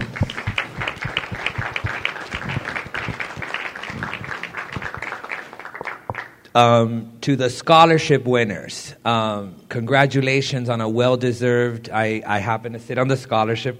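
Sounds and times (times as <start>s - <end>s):
audience applause: 0.0s - 6.4s
speech: 6.6s - 13.7s.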